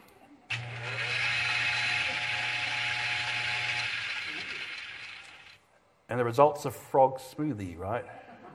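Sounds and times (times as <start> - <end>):
blender running: 0.5 - 5.6
speech: 6.1 - 8.2.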